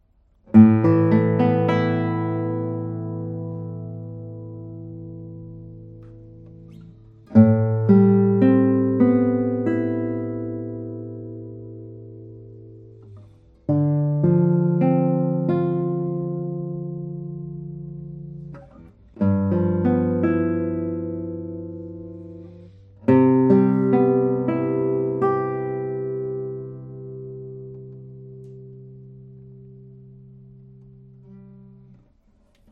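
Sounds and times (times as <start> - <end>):
guitar tones: 0.4 - 32.7.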